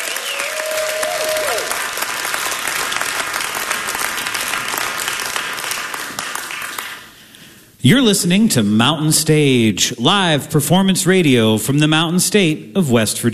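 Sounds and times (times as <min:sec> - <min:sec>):
whistle: 0:00.0 - 0:01.6
crowd cheering: 0:00.0 - 0:07.0
audience applause after live performance: 0:00.0 - 0:07.2
speech: 0:07.8 - 0:13.3.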